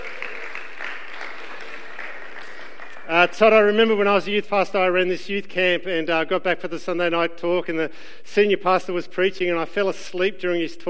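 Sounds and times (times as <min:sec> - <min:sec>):
audience clapping: 0:00.0 - 0:03.8
speech: 0:03.2 - 0:10.8.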